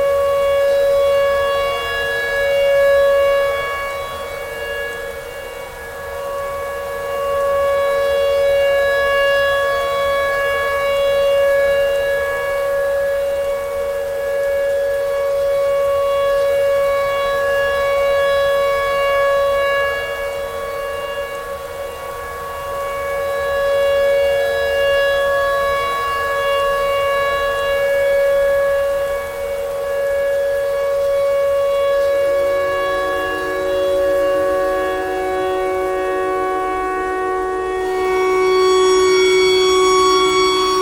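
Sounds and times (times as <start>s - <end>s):
tornado siren: 0.0s - 40.8s.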